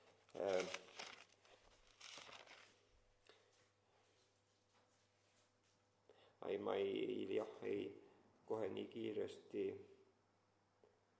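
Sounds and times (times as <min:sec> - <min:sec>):
Bible pages rustling as they are leafed through: 0:00.0 - 0:02.9
speech: 0:00.3 - 0:00.9, 0:06.5 - 0:10.0.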